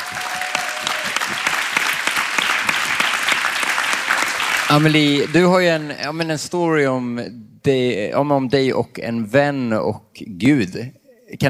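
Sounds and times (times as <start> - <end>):
audience applause: 0.0 - 6.1
speech: 4.7 - 11.4.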